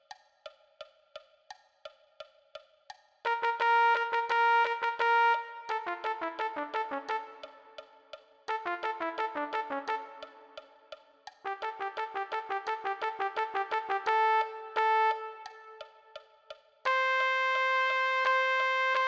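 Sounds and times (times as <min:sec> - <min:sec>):
trumpet: 0:03.3 - 0:16.2, 0:16.8 - 0:19.0.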